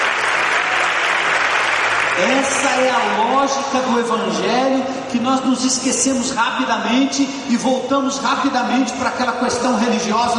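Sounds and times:
audience applause: 0.0s - 3.6s
speech: 2.2s - 10.3s.

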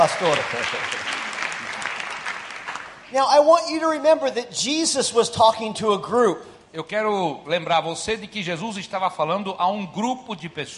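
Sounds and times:
speech: 0.0s - 1.2s, 3.1s - 10.7s
audience applause: 0.0s - 3.1s.

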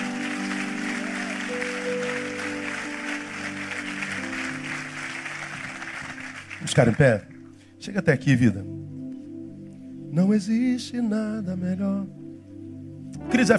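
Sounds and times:
audience applauding: 0.0s - 7.5s
speech: 6.8s - 8.9s, 10.1s - 12.2s, 13.3s - 13.5s.

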